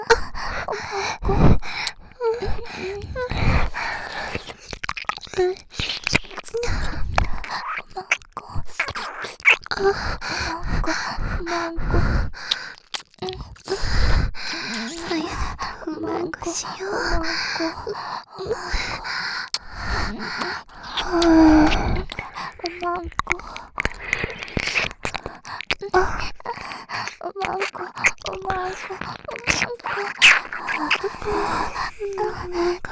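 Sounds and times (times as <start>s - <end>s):
ear licking sounds: 0.1s - 32.9s
person moaning: 14.5s - 17.8s, 20.0s - 23.4s.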